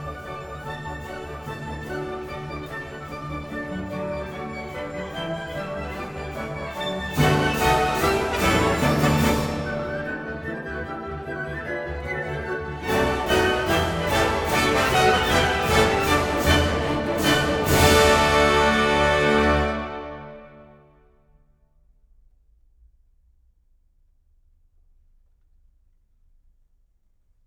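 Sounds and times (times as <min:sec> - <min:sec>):
orchestra: 0:00.0 - 0:21.2.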